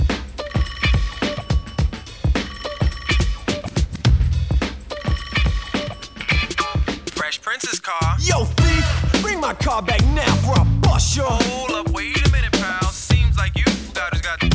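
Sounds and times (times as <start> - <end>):
telephone ringing: 0.0 - 4.1, 4.8 - 7.3
thumping rhythmic backing: 0.0 - 7.3, 8.0 - 14.5.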